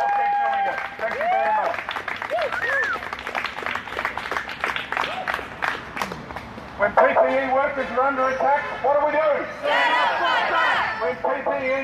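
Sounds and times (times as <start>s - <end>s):
shouted cheers: 0.0s - 3.0s
crowd applause at rally: 0.0s - 6.5s
speech: 7.3s - 11.8s.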